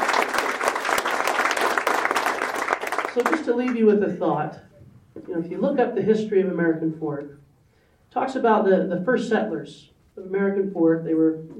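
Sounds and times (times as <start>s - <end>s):
audience applauding volunteers at a chamber of commerce gathering in American Fork: 0.0s - 3.5s
speech: 3.2s - 7.4s, 8.1s - 11.5s.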